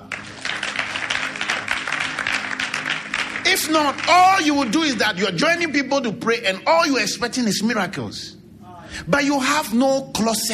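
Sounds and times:
audience clapping hands: 0.0 - 5.2
speech: 3.6 - 8.4, 9.0 - 10.5.

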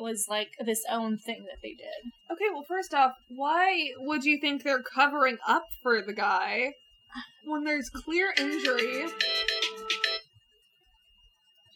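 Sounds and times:
speech: 0.0 - 9.5
phone alarm ringing: 7.9 - 10.3.

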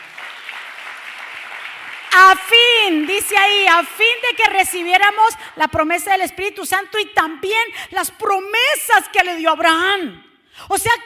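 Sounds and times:
crowd clapping: 0.0 - 5.6
speech: 2.2 - 11.0.

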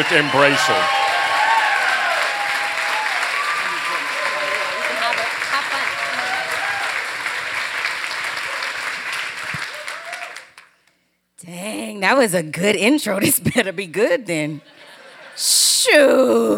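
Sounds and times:
speech: 0.0 - 1.0, 12.1 - 14.7, 15.4 - 16.5
applause: 0.0 - 10.9
laughter: 3.6 - 6.8, 13.2 - 16.2.

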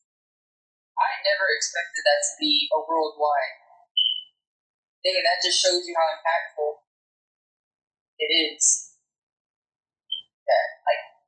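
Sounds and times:
speech: 1.2 - 3.6, 5.0 - 6.8, 8.2 - 8.9, 10.5 - 11.1
fire alarm chirping: 4.0 - 4.3.

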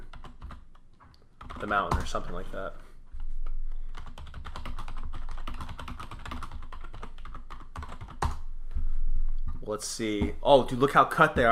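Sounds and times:
rapid typing on a computer keyboard for a Google Images search: 0.0 - 2.1, 3.9 - 8.4
speech: 1.6 - 2.9, 9.7 - 11.4.

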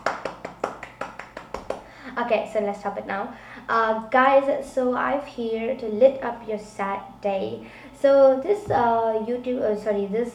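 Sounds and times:
sharp hand claps: 0.0 - 1.9
speech: 2.2 - 10.3.

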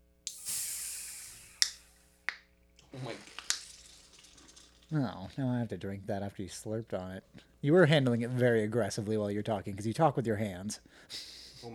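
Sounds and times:
long hiss of escaping gas: 0.2 - 5.4
speech: 2.9 - 3.4, 4.9 - 11.7
beer can tab cracking open: 3.2 - 5.4.

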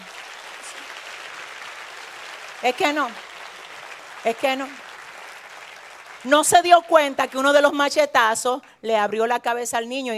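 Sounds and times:
audience applause: 0.0 - 7.7
speech: 2.6 - 3.3, 4.2 - 4.9, 6.2 - 10.1.

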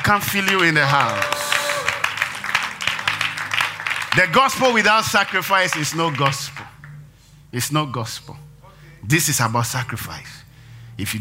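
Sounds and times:
audience clapping: 0.0 - 7.0
speech: 0.1 - 1.4, 4.2 - 6.5, 7.5 - 8.4, 9.0 - 10.4, 11.0 - 11.2.

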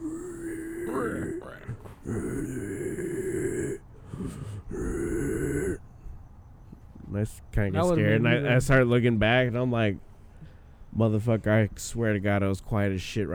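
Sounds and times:
person imitating a pig grunting: 0.0 - 5.8
speech: 7.6 - 10.1, 11.0 - 13.3.

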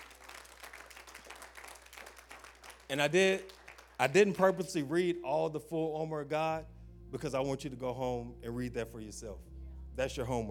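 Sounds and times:
audience applause, hand clapping: 0.0 - 4.4
speech: 2.9 - 10.4.

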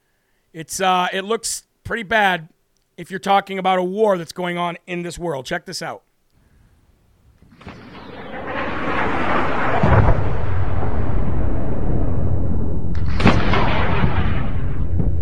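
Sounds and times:
speech: 0.5 - 6.1
explosive bursts of a MiG-29 shot down in Arma 3: 7.4 - 15.2
air defense fire booming roar in Arma 3: 7.5 - 15.2.

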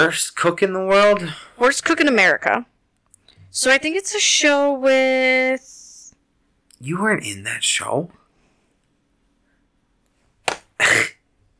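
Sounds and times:
speech: 0.0 - 2.7, 3.5 - 5.8, 6.8 - 8.2
slap: 10.4 - 10.7.

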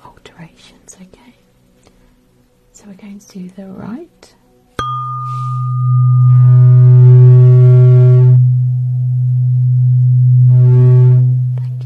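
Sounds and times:
speech: 2.8 - 4.4
hearing aid test tone buzzing: 4.8 - 11.8.

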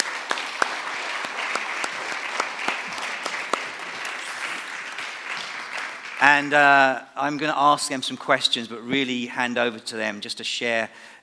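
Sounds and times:
audience applause welcoming guests onto a church stage: 0.0 - 6.7
speech: 6.2 - 11.2.

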